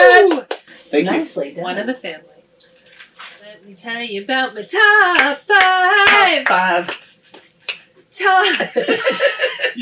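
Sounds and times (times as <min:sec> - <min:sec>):
hand clap: 0:00.1 - 0:00.7, 0:05.1 - 0:07.9
speech: 0:00.9 - 0:02.3, 0:03.6 - 0:07.1, 0:08.2 - 0:09.8
finger snap: 0:06.9 - 0:07.9
laughter: 0:08.4 - 0:09.8.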